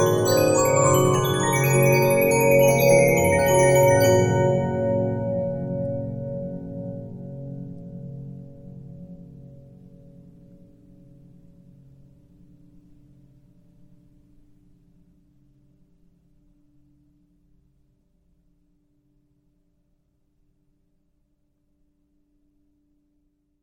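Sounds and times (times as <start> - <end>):
Regina 15-inch disc music box: 0.0 - 6.0.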